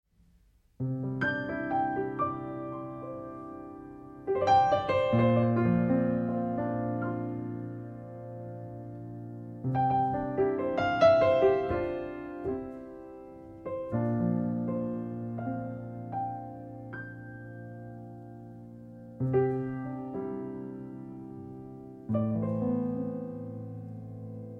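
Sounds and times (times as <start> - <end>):
piano arrangement: 0.3 - 24.5.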